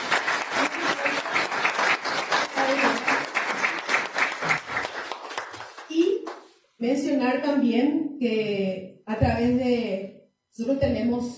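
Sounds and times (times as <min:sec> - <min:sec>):
audience applause: 0:00.0 - 0:05.9
speech: 0:06.8 - 0:11.3.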